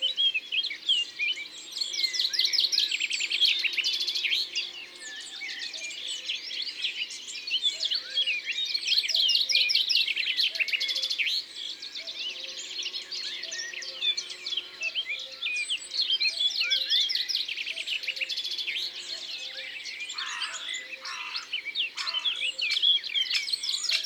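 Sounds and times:
common chiffchaff singing: 0:00.0 - 0:24.0.

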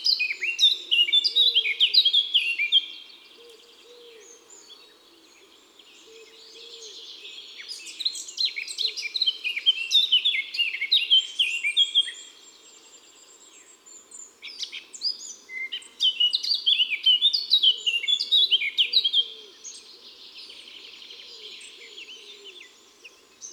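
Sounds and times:
Eurasian blackcap singing in woods and forests: 0:00.0 - 0:23.5.

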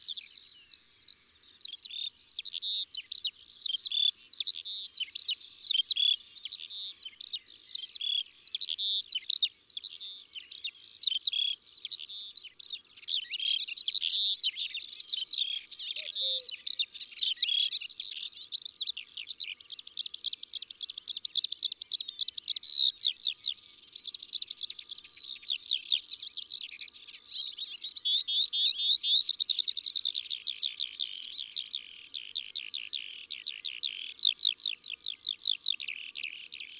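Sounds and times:
birds singing in the countryside: 0:00.0 - 0:36.7.

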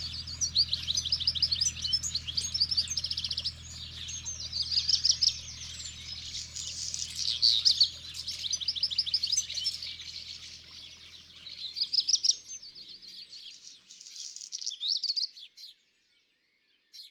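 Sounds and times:
house sparrow chattering: 0:00.0 - 0:12.6.

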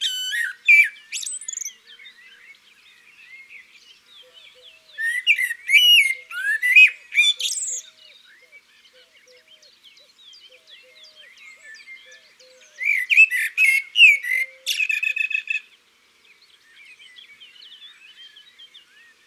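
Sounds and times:
magpie calling in the countryside: 0:00.0 - 0:01.7, 0:05.0 - 0:07.7, 0:12.8 - 0:15.6
birdsong in the countryside: 0:00.0 - 0:19.2.

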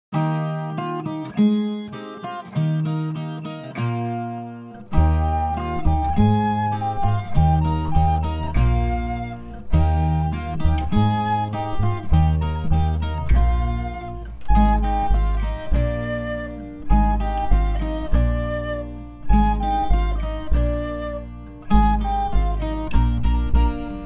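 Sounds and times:
instrumental music: 0:00.1 - 0:24.0.

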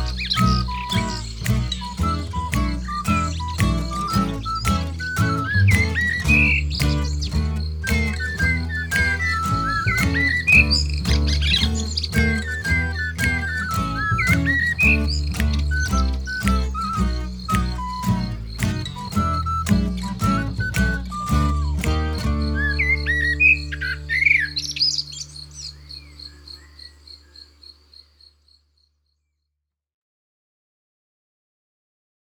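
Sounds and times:
instrumental music: 0:00.0 - 0:25.4.

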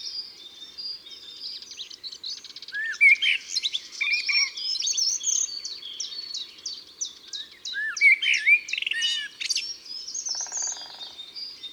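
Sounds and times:
Grimpereau des jardins short-toed treecreeper singing in woods and forests: 0:02.7 - 0:11.7.

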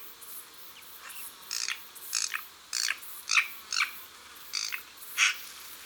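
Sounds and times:
Eurasian magpie chack notes and rattling chatter: 0:01.5 - 0:03.9, 0:04.6 - 0:05.3.

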